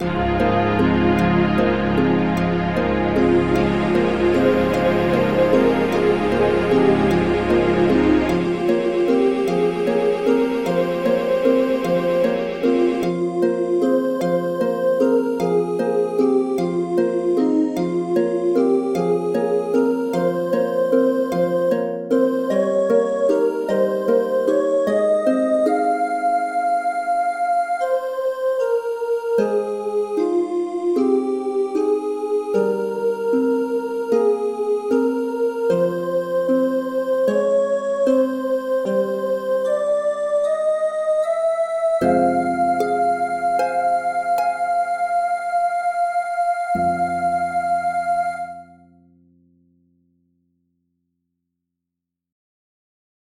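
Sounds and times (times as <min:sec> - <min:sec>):
Christmas music: 0:00.0 - 0:49.1.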